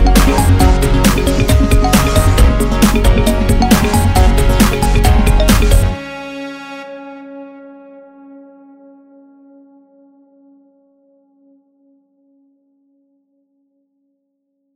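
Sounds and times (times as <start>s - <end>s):
liquid dub breakbeat: 0.0s - 6.0s.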